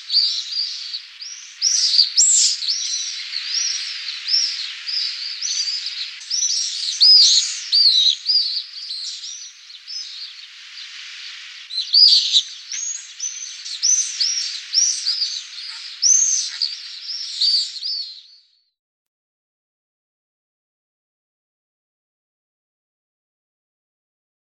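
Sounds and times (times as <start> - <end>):
pallid swift calling: 0.0 - 18.0.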